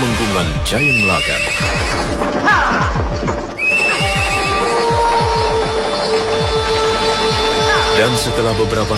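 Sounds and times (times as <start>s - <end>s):
horse-drawn carriage wheels rumbling and creaking: 0.0s - 8.9s
speech: 0.4s - 3.4s, 8.0s - 8.9s
horse whinnying: 0.8s - 8.1s
clip-clop of hooves of horse-drawn carriage: 0.8s - 8.9s.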